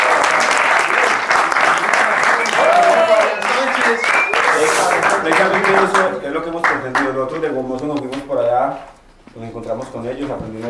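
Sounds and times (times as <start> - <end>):
audience applause: 0.0 - 6.1
speech: 5.3 - 10.6.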